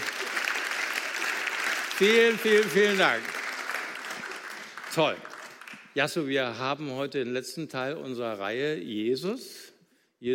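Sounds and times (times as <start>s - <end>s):
audience applause: 0.0s - 5.9s
speech: 2.0s - 3.4s, 5.0s - 5.3s, 6.0s - 9.6s, 10.2s - 10.3s.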